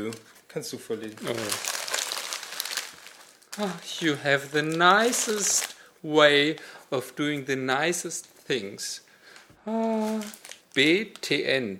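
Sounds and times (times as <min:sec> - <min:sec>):
speech: 0:00.0 - 0:01.8, 0:03.6 - 0:11.7
paper letter crinkling as it is unfolded: 0:00.0 - 0:05.8, 0:09.8 - 0:11.3.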